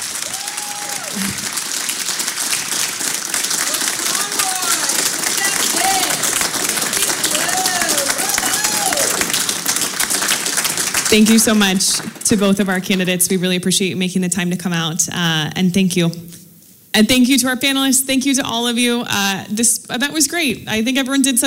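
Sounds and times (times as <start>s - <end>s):
audience applause: 0.0s - 12.3s
speech: 11.1s - 16.4s, 17.0s - 21.4s.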